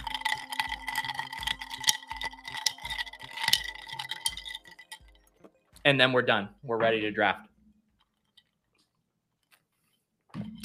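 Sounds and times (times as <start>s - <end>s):
ice cubes clinking in a glass stirred by a spoon: 0.0s - 5.1s
speech: 5.9s - 7.5s.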